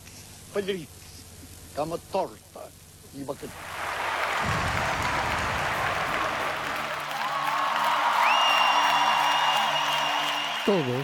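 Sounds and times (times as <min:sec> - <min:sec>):
speech: 0:00.5 - 0:01.0, 0:01.8 - 0:05.1, 0:10.6 - 0:11.0
applause: 0:03.5 - 0:11.0.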